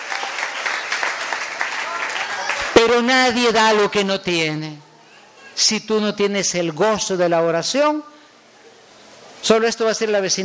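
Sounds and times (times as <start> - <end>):
audience applause: 0.0 - 2.8
speech: 2.8 - 4.9, 5.6 - 8.1, 9.4 - 10.4.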